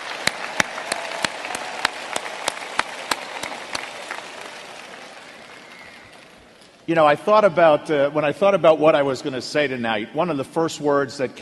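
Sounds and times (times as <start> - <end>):
crowd applauding: 0.0 - 6.6
speech: 6.9 - 11.3.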